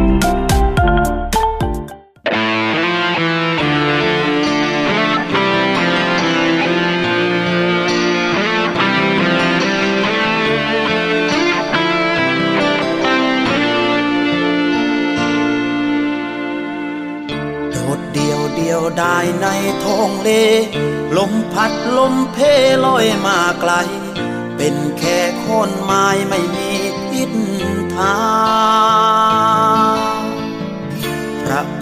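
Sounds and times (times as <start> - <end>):
song played by the program: 0.0 - 31.7.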